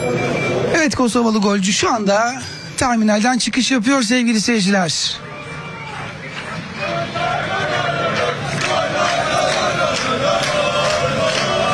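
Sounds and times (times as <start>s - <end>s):
speech: 0.8s - 5.3s
football fans cheering at airport arrival: 5.1s - 11.7s.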